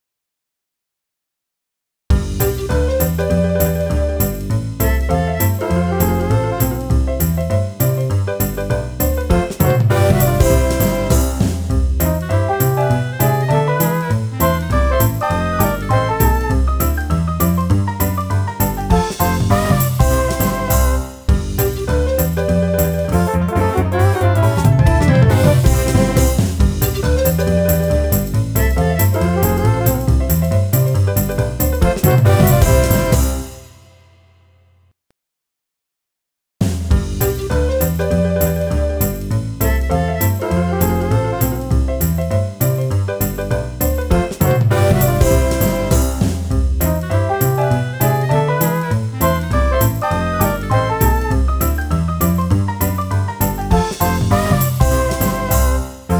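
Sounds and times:
music mix: 0:02.1 - 0:33.8, 0:36.8 - 0:56.1.

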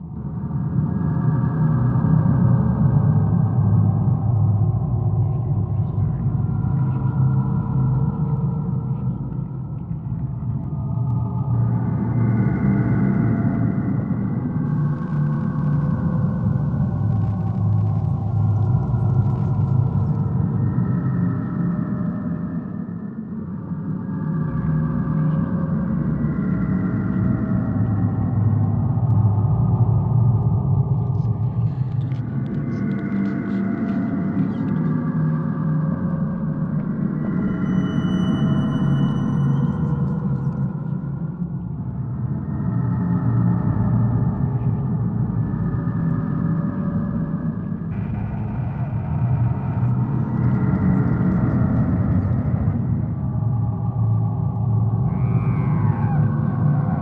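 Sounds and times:
ambience: 0:00.0 - 0:56.9.

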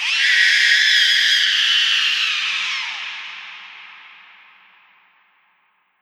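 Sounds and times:
horror scream: 0:00.0 - 0:03.5.

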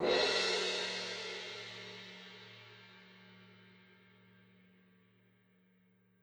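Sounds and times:
cymbal: 0:00.0 - 0:03.8.

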